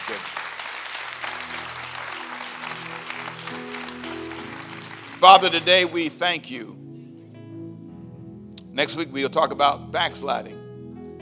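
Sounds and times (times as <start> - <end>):
audience clapping: 0.0 - 6.5
speech: 5.2 - 6.8, 8.8 - 10.6.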